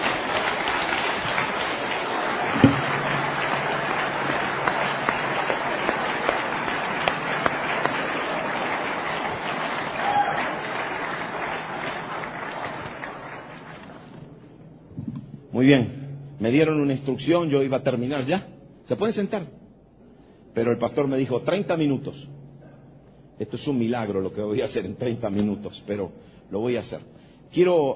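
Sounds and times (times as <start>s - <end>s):
audience applause: 0.0s - 14.3s
speech: 15.6s - 19.6s, 20.6s - 22.4s, 23.4s - 27.9s.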